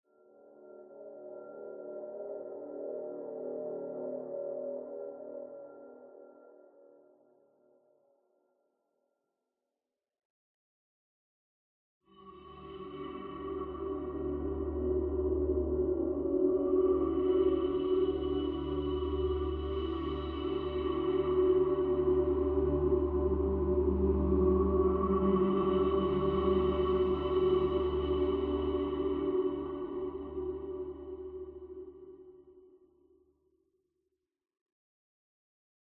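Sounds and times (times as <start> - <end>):
ambient music: 0.1 - 7.0, 12.2 - 32.6.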